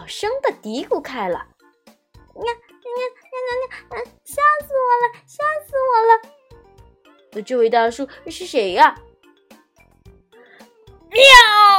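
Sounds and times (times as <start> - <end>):
speech: 0.1 - 1.5, 2.4 - 6.4, 7.3 - 9.1, 11.1 - 11.7
person imitating a cat meow: 11.1 - 11.7.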